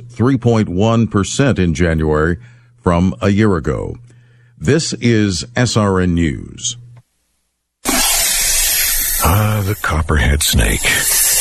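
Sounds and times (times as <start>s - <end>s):
speech: 0.1s - 6.8s, 9.6s - 11.3s
RV freshwater tank overflowing, hissing: 7.9s - 10.0s, 10.6s - 11.3s.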